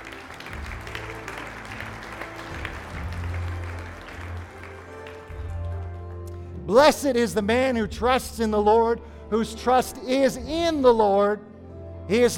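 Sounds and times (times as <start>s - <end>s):
audience applause: 0.0s - 6.2s
speech: 6.7s - 11.5s, 12.1s - 12.3s.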